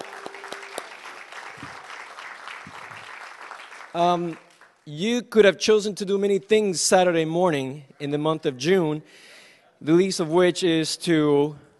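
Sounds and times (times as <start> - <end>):
round of applause: 0.0 - 4.9
speech: 3.9 - 11.6.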